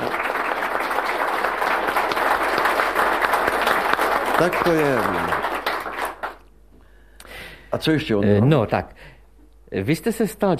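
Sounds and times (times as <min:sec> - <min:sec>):
audience applause: 0:00.0 - 0:06.5
speech: 0:04.4 - 0:05.4, 0:07.8 - 0:10.5.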